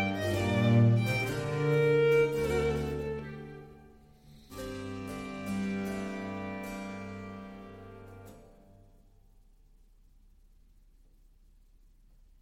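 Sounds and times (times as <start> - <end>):
slow violin sonata movement in B-flat major: 0.0 - 8.4.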